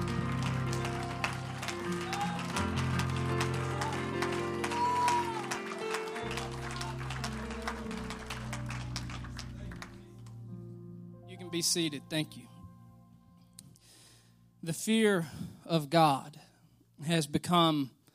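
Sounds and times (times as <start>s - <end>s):
audience clapping hands: 0.0s - 10.4s
sustained low musical tones: 0.0s - 15.1s
speech: 11.6s - 12.5s, 14.7s - 16.4s, 17.0s - 18.0s.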